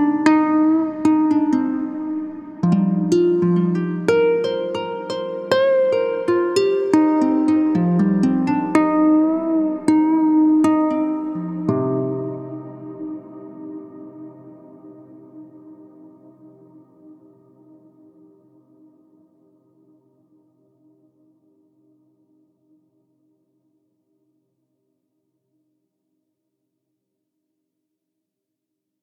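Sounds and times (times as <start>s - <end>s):
harp: 0.0s - 18.4s.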